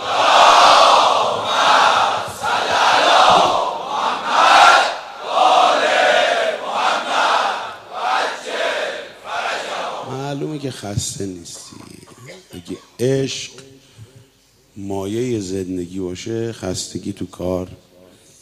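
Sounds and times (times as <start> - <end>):
gathering crowd chanting salawat together: 0.0 - 10.2
speech: 10.7 - 12.0, 12.6 - 13.6, 14.8 - 17.9.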